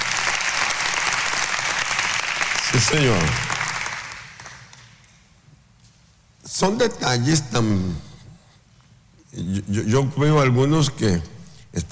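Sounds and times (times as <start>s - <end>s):
audience applause: 0.0s - 4.9s
speech: 2.8s - 3.4s, 6.6s - 8.1s, 9.3s - 11.9s.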